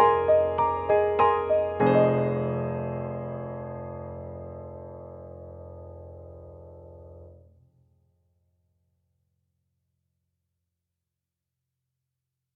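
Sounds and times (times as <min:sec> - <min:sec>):
upright piano in an underground tunnel: 0:00.0 - 0:07.5.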